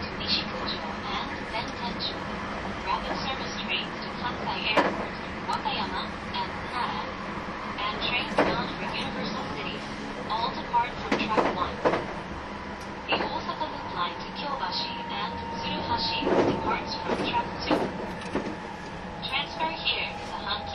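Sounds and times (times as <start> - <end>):
225 series 700 Special Rapid train running: 0.0 - 20.7
train wheels clacking and knocking: 10.9 - 19.6.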